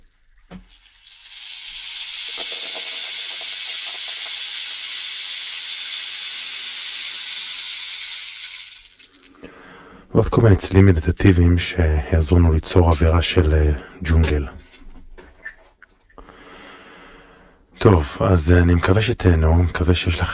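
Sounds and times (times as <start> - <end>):
rain stick tipped: 0.0 - 9.4
speech: 10.2 - 14.6, 17.8 - 20.3.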